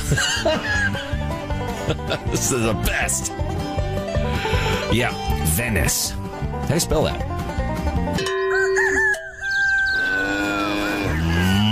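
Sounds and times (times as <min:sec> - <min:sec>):
laughter: 0:00.0 - 0:02.8
speech: 0:00.1 - 0:01.0, 0:01.9 - 0:03.6, 0:04.2 - 0:08.4
cow mooing sound effect: 0:04.3 - 0:04.9, 0:09.9 - 0:11.7
bright crowing-like call: 0:08.4 - 0:11.7.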